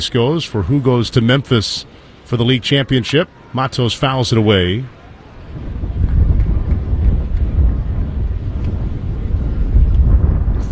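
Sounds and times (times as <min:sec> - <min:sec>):
speech: 0:00.0 - 0:05.0
faint crowd murmur: 0:00.0 - 0:10.7
heavy wind buffeting a crowd microphone: 0:05.3 - 0:10.7.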